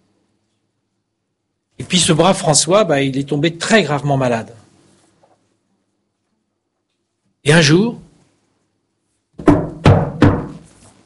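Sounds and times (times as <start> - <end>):
speech: 1.8 - 4.6, 7.4 - 8.0
knocking on a door: 9.4 - 10.6.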